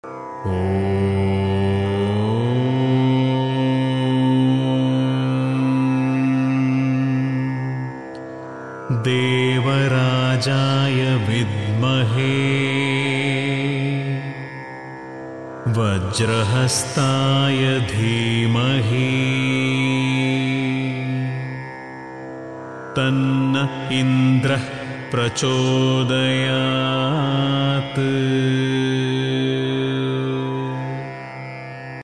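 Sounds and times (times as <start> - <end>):
mantra chanting: 0.4 - 7.9, 8.9 - 14.6, 15.6 - 21.6, 22.9 - 31.2.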